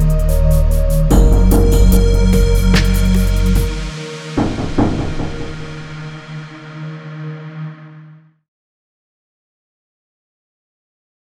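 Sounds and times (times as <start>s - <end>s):
instrumental music: 0.0s - 7.0s.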